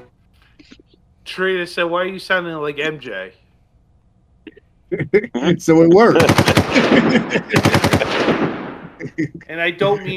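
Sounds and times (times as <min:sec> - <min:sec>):
dense steady background: 0:00.0 - 0:10.1
speech: 0:01.3 - 0:03.4, 0:05.1 - 0:08.3, 0:09.1 - 0:10.1
laughter: 0:04.9 - 0:10.1
machine-gun gunfire sound effect: 0:06.2 - 0:09.0.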